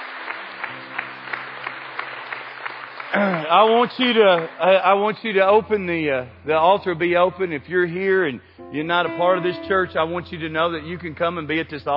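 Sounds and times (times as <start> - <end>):
audience applauding: 0.0 - 5.6
speech: 3.1 - 11.9.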